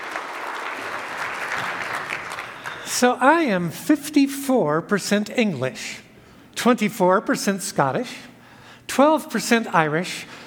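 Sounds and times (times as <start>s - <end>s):
audience applauding to welcome a speaker at a church teaching service: 0.0s - 3.0s
speech: 2.9s - 6.0s, 6.6s - 8.3s, 9.0s - 10.4s.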